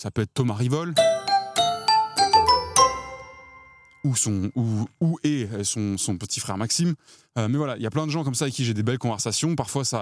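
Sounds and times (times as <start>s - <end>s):
speech: 0.0s - 1.2s, 4.0s - 9.9s
short podcast jingle of bright bell-like chimes: 1.0s - 4.6s.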